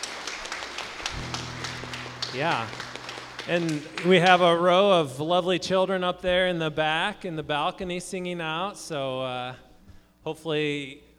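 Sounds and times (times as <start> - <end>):
crowd applause: 0.0 - 5.1
speech: 2.3 - 2.8, 3.4 - 9.6, 10.2 - 11.0.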